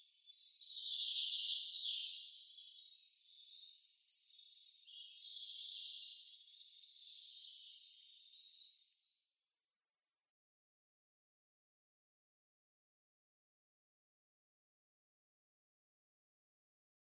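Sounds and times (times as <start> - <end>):
Short-toed Treecreeper calls: 0.0 - 8.5.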